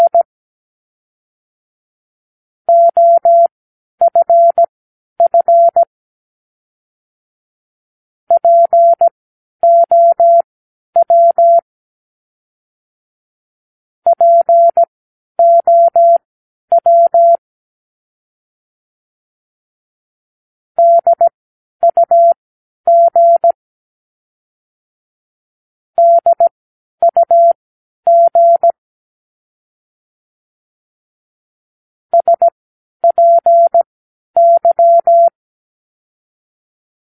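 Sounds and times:
morse code practice words: 0.0s - 0.3s, 2.7s - 3.5s, 4.1s - 5.9s, 8.3s - 11.6s, 14.1s - 17.4s, 20.8s - 23.6s, 26.0s - 28.8s, 32.2s - 33.8s, 34.4s - 35.4s.

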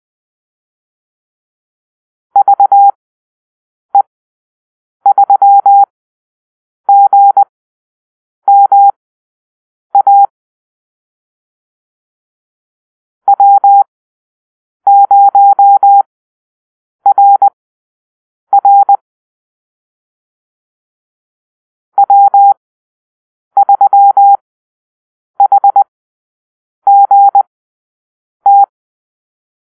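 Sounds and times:
morse code call-sign drill: 2.4s - 3.0s, 5.1s - 5.9s, 6.9s - 7.5s, 8.5s - 9.0s, 10.0s - 10.3s, 13.3s - 13.9s, 14.9s - 16.1s, 17.1s - 17.5s, 18.5s - 19.0s, 22.0s - 22.6s, 23.6s - 24.4s, 25.4s - 25.8s, 26.9s - 27.5s, 28.4s - 28.7s.

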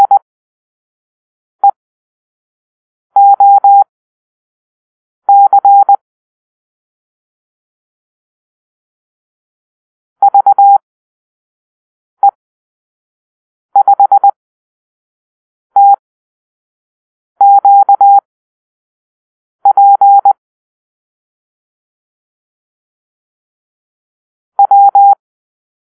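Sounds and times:
morse code beeps in a call-sign drill: 0.0s - 0.2s, 3.2s - 3.9s, 5.3s - 6.0s, 10.2s - 10.8s, 13.8s - 14.4s, 15.8s - 16.0s, 17.4s - 18.2s, 19.6s - 20.4s, 24.6s - 25.2s.

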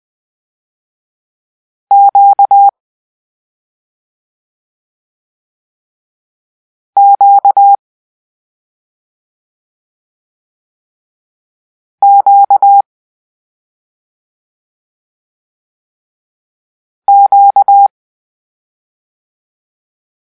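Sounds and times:
morse code for the letter Q: 1.9s - 2.7s, 7.0s - 7.8s, 12.0s - 12.8s, 17.1s - 17.9s.

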